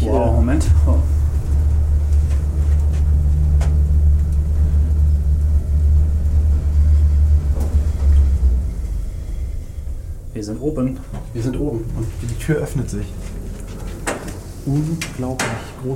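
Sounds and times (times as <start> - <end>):
elevator moving upward: 0.0 - 15.9
speech: 0.4 - 1.2, 10.5 - 13.3, 14.6 - 15.9.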